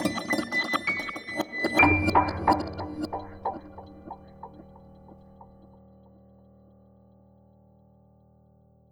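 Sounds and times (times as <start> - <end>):
abstract piano music: 0.1 - 5.7.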